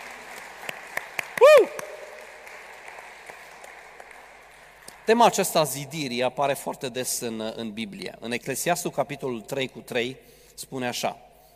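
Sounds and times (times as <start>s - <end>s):
audience applauding: 0.0s - 5.7s
speech: 5.1s - 11.3s.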